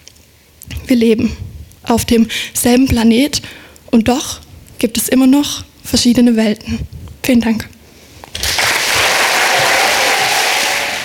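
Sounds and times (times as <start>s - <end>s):
speech: 0.9s - 7.7s
thunderous applause from an audience: 8.4s - 11.0s.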